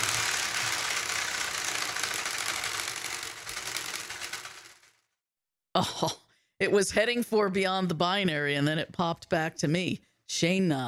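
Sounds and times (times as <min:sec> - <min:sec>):
homemade prize wheel spinning and clicking: 0:00.0 - 0:05.1
speech: 0:05.8 - 0:10.8.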